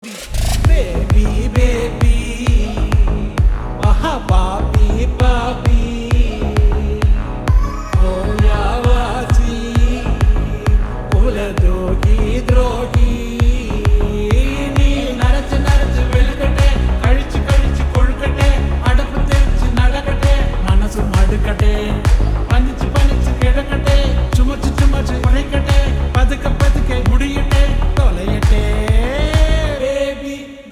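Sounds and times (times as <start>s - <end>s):
slowed reverb music: 0.3s - 30.4s.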